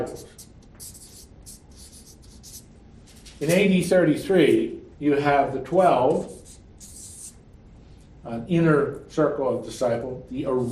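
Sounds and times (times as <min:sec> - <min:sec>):
speech: 0:00.0 - 0:00.9, 0:03.4 - 0:06.4, 0:08.2 - 0:10.7
marker squeaking on a board drawing a big circle: 0:00.0 - 0:02.7, 0:06.2 - 0:07.4.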